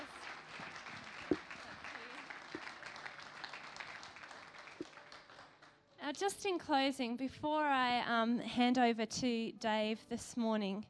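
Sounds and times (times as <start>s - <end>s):
audience round of applause: 0.0s - 5.7s
speech: 6.1s - 10.8s.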